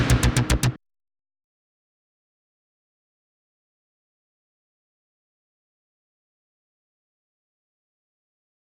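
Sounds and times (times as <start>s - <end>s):
bass: 0.0s - 0.8s.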